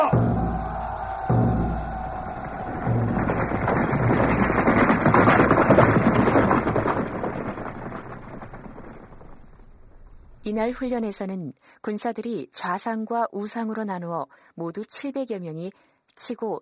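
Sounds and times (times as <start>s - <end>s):
war drums beating: 0.0s - 6.7s
speech: 10.6s - 16.6s.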